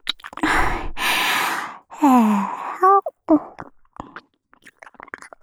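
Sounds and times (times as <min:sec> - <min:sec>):
ASMR ear licking in the left ear: 0:00.4 - 0:03.6.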